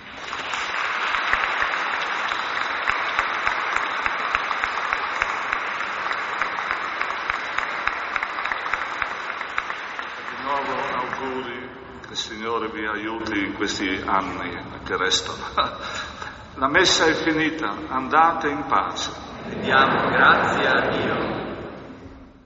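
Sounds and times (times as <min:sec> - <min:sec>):
applause for newlyweds in church: 0:00.0 - 0:11.6
speech: 0:12.8 - 0:16.0, 0:16.6 - 0:21.0
laughter: 0:15.2 - 0:16.6, 0:18.8 - 0:22.3.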